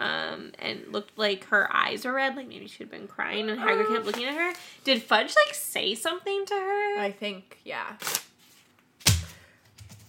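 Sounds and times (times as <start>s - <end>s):
speech: 0.6s - 8.2s
post-it note ripped off: 8.0s - 8.6s.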